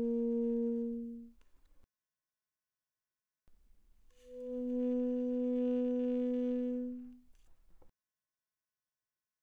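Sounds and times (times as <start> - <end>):
alto saxophone notes played softly without vibrato: 0.0 - 1.3, 4.2 - 7.2.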